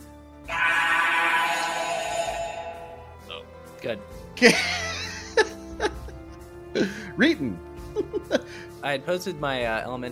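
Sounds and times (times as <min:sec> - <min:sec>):
voice imitating a metallic fiery monster roar: 0:00.5 - 0:03.1
speech: 0:03.8 - 0:04.8, 0:06.8 - 0:10.1.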